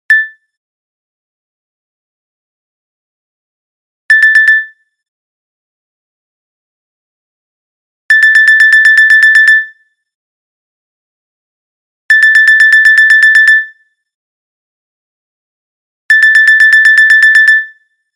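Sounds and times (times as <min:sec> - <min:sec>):
alarm clock: 0:08.1 - 0:09.6, 0:12.1 - 0:13.6, 0:16.1 - 0:17.9.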